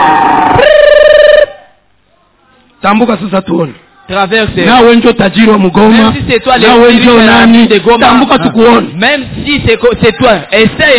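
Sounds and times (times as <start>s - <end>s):
police whistle blown: 0.0s - 1.7s
speech: 2.8s - 10.9s.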